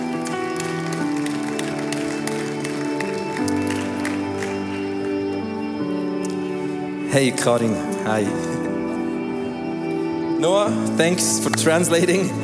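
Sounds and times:
church audience applauding a guest on stage: 0.0 - 5.3
loud sustained music with held chords: 0.0 - 12.4
speech: 7.1 - 8.6, 10.4 - 12.4.

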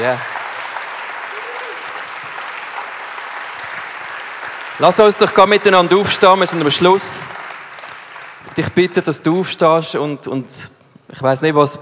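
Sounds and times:
speech: 0.0 - 0.3, 4.8 - 7.4, 8.5 - 11.8
audience applause: 0.0 - 8.9.

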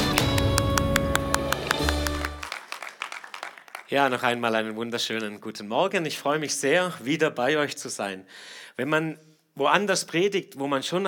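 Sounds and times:
loud sustained music: 0.0 - 2.5
audience applause: 0.0 - 4.2
rhythmic clapping: 0.0 - 4.3
speech: 3.9 - 11.0.

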